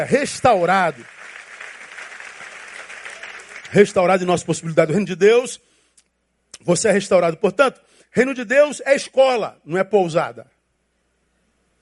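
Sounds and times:
speech: 0.0s - 1.2s, 3.7s - 5.7s, 6.6s - 10.5s
crowd applauding: 0.0s - 4.3s.

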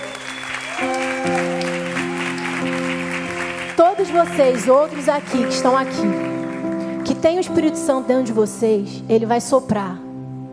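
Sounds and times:
crowd clapping: 0.0s - 7.5s
keyboard chords: 0.0s - 10.5s
speech: 4.0s - 6.4s, 7.2s - 10.0s.

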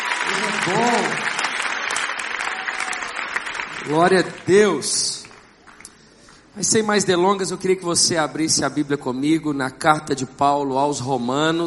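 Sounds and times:
audience applauding: 0.0s - 5.9s
speech: 0.3s - 1.3s, 3.8s - 5.2s, 6.6s - 11.6s.

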